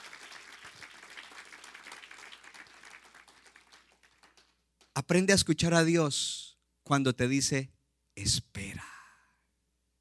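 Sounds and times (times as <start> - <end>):
audience applauding: 0.0 - 4.6
speech: 5.0 - 8.6.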